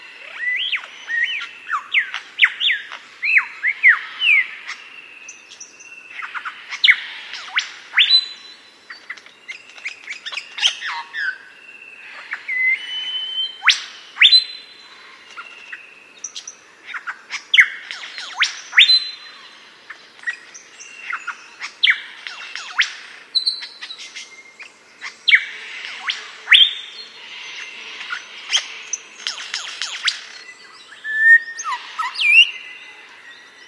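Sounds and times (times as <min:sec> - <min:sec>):
superb lyrebird singing: 0:00.1 - 0:33.6.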